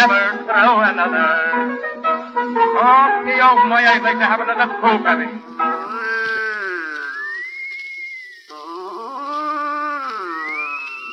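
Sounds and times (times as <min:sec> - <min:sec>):
speech: 0:00.0 - 0:02.0, 0:02.8 - 0:05.7
voice imitating a man snoring: 0:05.6 - 0:07.4, 0:08.5 - 0:11.1.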